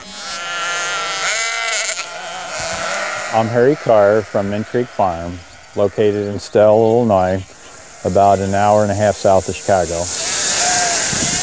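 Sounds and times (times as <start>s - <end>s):
sheep bleating: 0.0s - 6.7s, 10.2s - 11.4s
speech: 3.3s - 10.2s.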